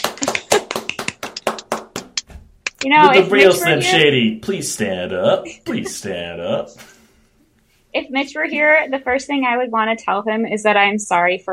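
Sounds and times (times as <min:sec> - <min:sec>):
laughter: 0:00.0 - 0:01.2, 0:03.0 - 0:06.9
hand clapping for a guest: 0:00.0 - 0:03.7
speech: 0:02.8 - 0:06.9, 0:07.9 - 0:11.5.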